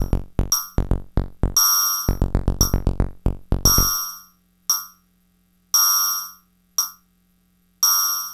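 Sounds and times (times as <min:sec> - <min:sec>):
glitchy beats: 0:00.0 - 0:04.1.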